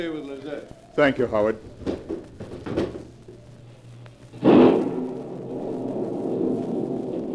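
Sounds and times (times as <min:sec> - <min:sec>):
speech: 0:00.0 - 0:02.0
thunder crashing: 0:01.0 - 0:07.3
wind screaming: 0:04.5 - 0:07.3.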